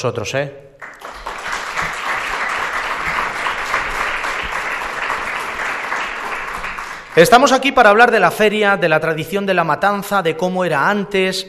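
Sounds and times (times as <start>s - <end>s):
speech: 0.0s - 0.8s, 7.2s - 11.4s
audience applause: 0.8s - 7.4s.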